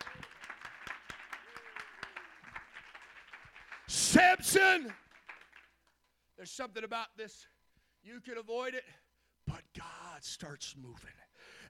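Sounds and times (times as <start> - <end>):
audience clapping: 0.0 - 6.1
speech: 4.1 - 5.0, 6.4 - 11.6.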